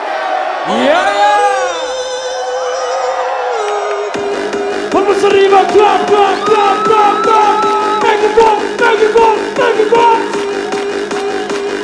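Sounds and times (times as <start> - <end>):
crowd shouting loudly: 0.0 - 11.7
speech: 0.7 - 1.3, 5.2 - 7.6, 8.2 - 10.4.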